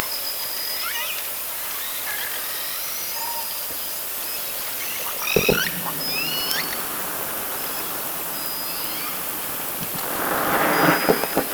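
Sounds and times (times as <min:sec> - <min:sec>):
orca sounds passing by at night: 0:04.2 - 0:11.5.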